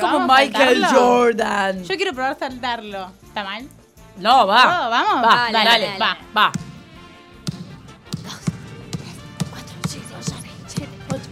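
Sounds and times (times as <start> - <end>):
speech: 0.1 - 6.7
ball bouncing like a basketball being dribbled: 6.5 - 11.2.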